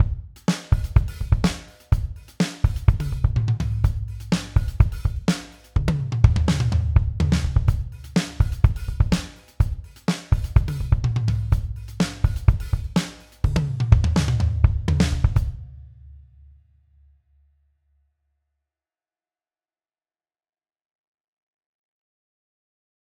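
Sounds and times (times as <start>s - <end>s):
old dusty drums: 0.0s - 15.7s.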